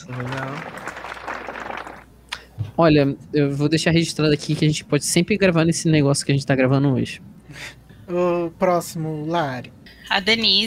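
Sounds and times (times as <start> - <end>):
speech: 0.0 - 0.8, 2.8 - 10.6
brief scattered clapping: 0.0 - 2.1.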